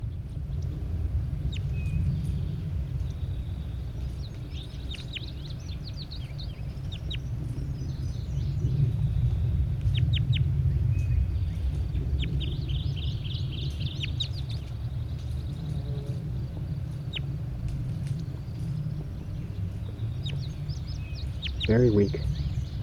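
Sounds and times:
constant low rumble: 0:00.0 - 0:22.8
large bird calling: 0:04.3 - 0:09.2, 0:09.8 - 0:17.4, 0:18.6 - 0:22.8
speech: 0:21.7 - 0:22.4.

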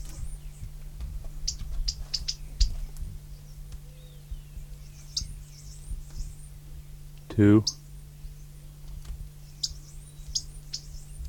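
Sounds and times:
low steady hum: 0:00.0 - 0:11.2
alarm notes from two birds: 0:01.4 - 0:06.9, 0:07.5 - 0:08.8, 0:09.4 - 0:11.2
speech: 0:07.4 - 0:07.8.

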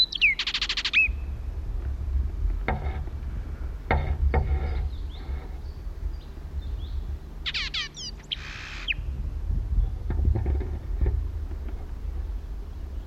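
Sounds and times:
bird contact calls: 0:00.0 - 0:01.2, 0:04.4 - 0:09.1
low rumbling background: 0:00.0 - 0:13.0
faint clicks and knocks: 0:01.8 - 0:05.7, 0:09.8 - 0:12.3.

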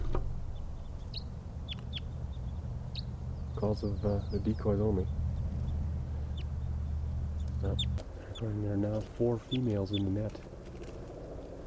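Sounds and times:
low rumble of noise: 0:00.0 - 0:09.0
wild birds chirping: 0:00.0 - 0:11.6
speech: 0:03.6 - 0:05.2, 0:07.6 - 0:10.6.

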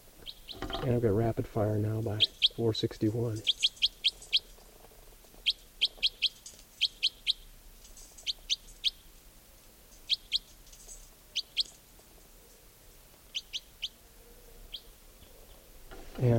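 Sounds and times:
wild birds calling: 0:00.0 - 0:16.3
speech: 0:00.8 - 0:03.5.

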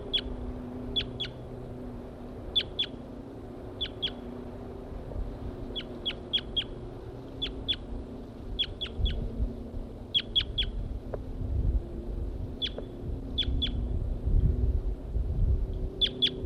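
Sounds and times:
wild bird singing short high sharp chirps: 0:00.0 - 0:00.3, 0:00.9 - 0:01.4, 0:02.5 - 0:03.0, 0:03.8 - 0:04.2, 0:05.7 - 0:06.8, 0:07.4 - 0:07.9, 0:08.6 - 0:09.2, 0:10.1 - 0:10.8, 0:12.6 - 0:13.9, 0:16.0 - 0:16.4
low rumbling noise: 0:00.0 - 0:16.4.

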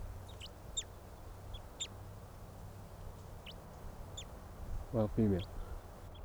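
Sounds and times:
crossbill flock calling: 0:00.2 - 0:06.1
speech: 0:04.9 - 0:05.5.

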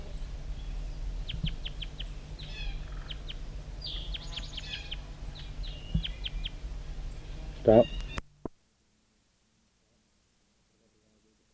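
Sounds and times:
wild bird calling near the bottom of the hollow: 0:00.0 - 0:08.4
speech: 0:07.7 - 0:08.0.

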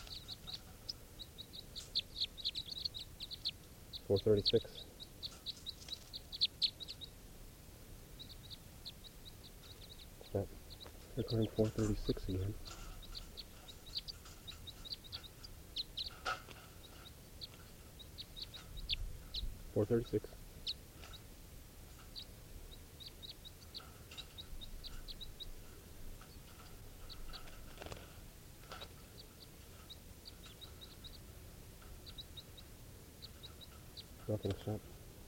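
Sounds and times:
short high-pitched bird calls: 0:00.0 - 0:07.2, 0:08.1 - 0:21.3, 0:21.9 - 0:27.8, 0:28.8 - 0:34.8
speech: 0:04.1 - 0:04.8, 0:10.3 - 0:10.6, 0:11.2 - 0:12.7, 0:19.8 - 0:20.4, 0:34.4 - 0:34.9.

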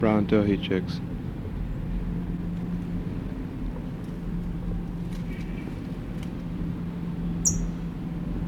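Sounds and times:
speech: 0:00.0 - 0:01.2
low droning hum: 0:00.0 - 0:08.4
towhee alarm call: 0:07.4 - 0:07.8.

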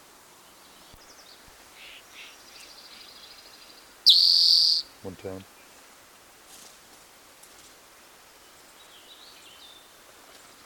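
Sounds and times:
bird song: 0:00.4 - 0:04.9, 0:08.4 - 0:10.0
speech: 0:05.0 - 0:05.6.

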